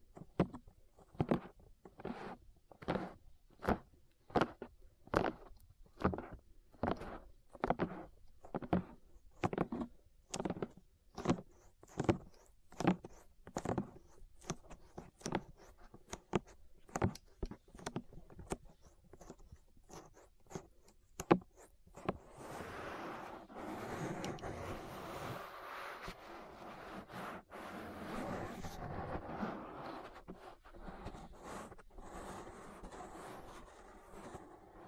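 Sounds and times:
continuous dense scratchy rustling: 1.0s - 34.8s
ear massage rubbing strokes: 12.0s - 34.8s.

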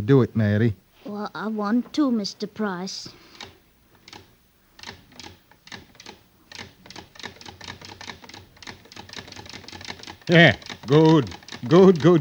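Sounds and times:
speech: 0.0s - 3.3s, 10.3s - 12.1s
sewing machine stitching a single-thread chain: 3.4s - 12.1s.

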